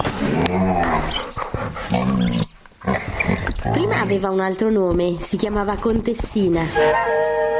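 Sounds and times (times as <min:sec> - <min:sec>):
seven-year-old guide dog growling and yipping playfully: 0:00.1 - 0:04.2
speech: 0:00.5 - 0:02.5, 0:03.7 - 0:07.4.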